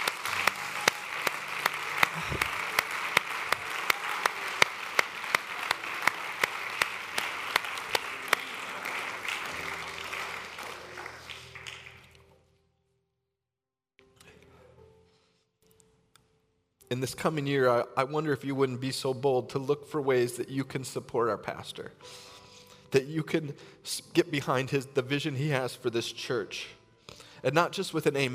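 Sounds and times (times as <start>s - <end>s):
audience clapping: 0.0s - 12.3s
speech: 16.9s - 22.3s, 22.9s - 28.3s.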